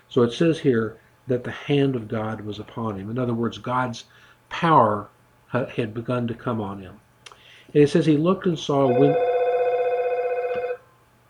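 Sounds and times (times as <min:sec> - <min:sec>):
speech: 0:00.1 - 0:07.0, 0:07.7 - 0:09.3
telephone ringing with a warbling electronic tone: 0:08.8 - 0:10.9.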